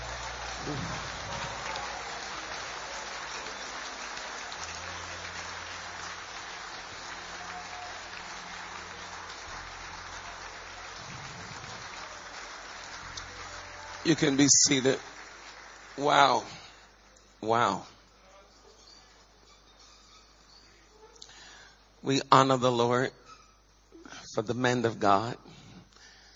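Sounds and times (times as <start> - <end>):
audience clapping: 0.0 - 17.2
speech: 14.1 - 15.1, 16.0 - 16.6, 17.4 - 17.9, 22.0 - 23.2, 24.4 - 25.6.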